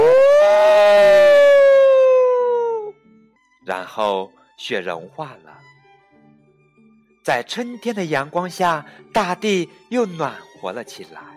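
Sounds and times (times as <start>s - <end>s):
human voice imitating a hungry wolf howling: 0.0s - 3.0s
speech: 3.8s - 5.7s, 7.2s - 11.3s.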